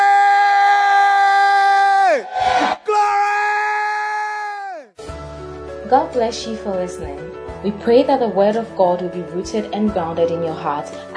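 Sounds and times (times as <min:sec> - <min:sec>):
crowd cheering: 0:00.0 - 0:04.9
audience shouting glory to Jesus: 0:00.9 - 0:04.9
speech: 0:05.9 - 0:11.1.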